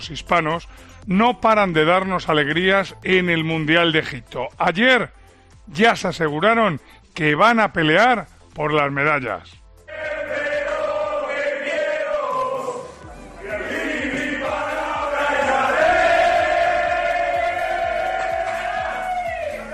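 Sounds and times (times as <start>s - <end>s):
speech: 0.0s - 9.6s
handball team chanting and celebrating: 9.8s - 19.7s.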